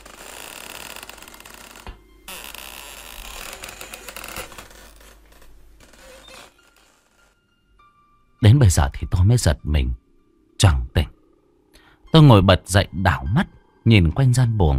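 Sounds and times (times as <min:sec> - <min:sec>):
creaking door slowly closing: 0:00.0 - 0:07.4
speech: 0:08.4 - 0:10.0, 0:10.6 - 0:11.1, 0:12.1 - 0:14.7.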